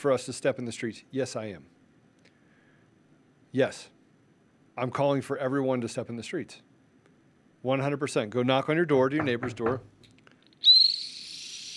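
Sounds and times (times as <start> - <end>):
speech: 0.0 - 1.8, 3.5 - 4.0, 4.8 - 6.7, 7.6 - 9.9
bottle whistle blown: 10.6 - 11.7.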